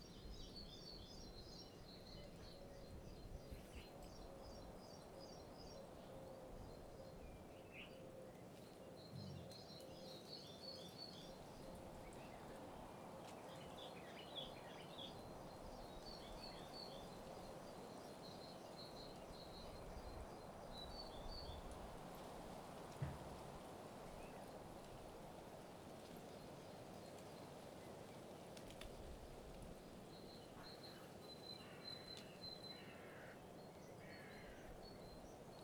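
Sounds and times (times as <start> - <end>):
country birds: 0.0 - 35.6
crows: 32.8 - 33.4, 34.0 - 34.8.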